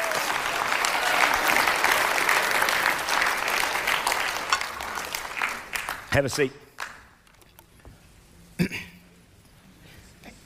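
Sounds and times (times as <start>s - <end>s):
audience applauding in praise: 0.0s - 7.2s
speech: 6.2s - 6.6s.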